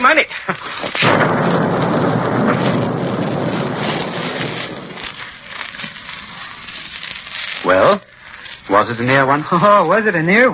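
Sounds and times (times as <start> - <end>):
speech: 0.0 - 1.3, 7.7 - 8.1, 8.7 - 10.5
V-1 flying bomb explosion: 0.8 - 7.2.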